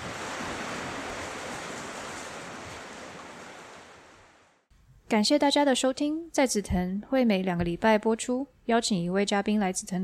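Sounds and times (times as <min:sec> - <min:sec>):
heavy rain: 0:00.0 - 0:04.4
speech: 0:05.1 - 0:10.0.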